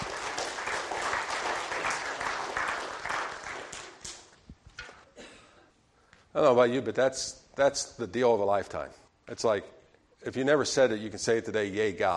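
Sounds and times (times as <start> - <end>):
audience applause: 0.0 - 4.2
speech: 6.4 - 12.1.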